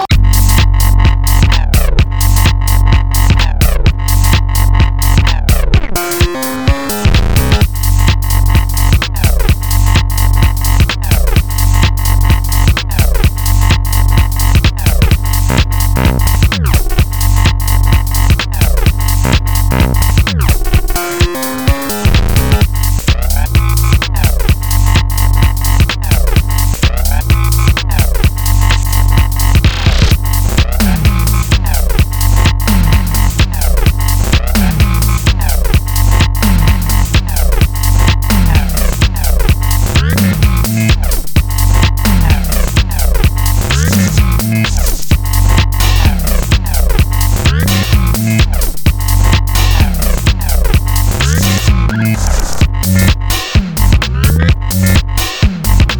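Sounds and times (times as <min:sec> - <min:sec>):
bass: 0:00.0 - 0:55.9.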